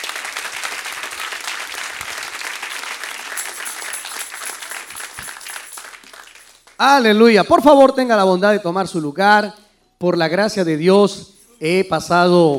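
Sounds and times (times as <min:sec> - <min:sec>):
audience applause: 0:00.0 - 0:06.8
speech: 0:06.8 - 0:12.5.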